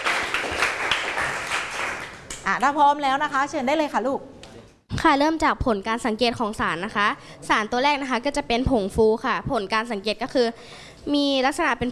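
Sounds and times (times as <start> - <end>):
classroom applause for presenting group: 0.0 - 2.4
speech: 2.5 - 4.3, 5.0 - 11.9.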